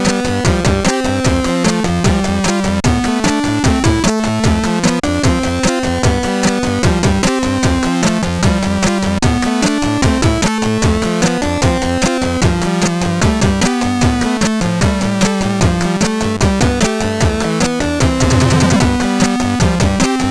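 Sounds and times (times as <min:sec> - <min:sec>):
blues chiptune music on SID 8580 sound chip: 0:00.0 - 0:20.3.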